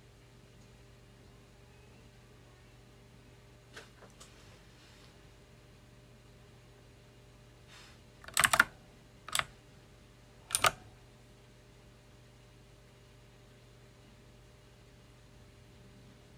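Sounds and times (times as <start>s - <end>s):
loud mechanical keyboard clacking: 8.2s - 9.5s, 10.5s - 10.9s.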